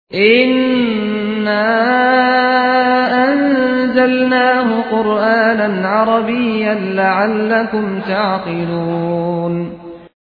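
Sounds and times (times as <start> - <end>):
Arabic Quran recitation: 0.1 - 10.2.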